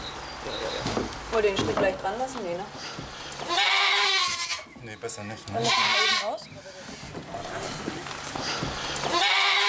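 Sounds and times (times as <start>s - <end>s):
steady hiss of noise: 0.0s - 9.6s
speech: 0.4s - 3.6s, 4.8s - 9.3s
goat bleating: 3.4s - 4.7s, 5.5s - 6.4s, 9.0s - 9.6s.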